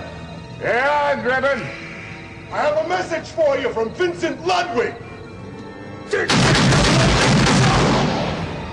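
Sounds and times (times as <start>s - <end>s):
speech: 0.6s - 1.9s, 2.5s - 5.1s, 6.1s - 7.1s
gunshot during a phone call in The Naked Gun: 6.3s - 8.7s.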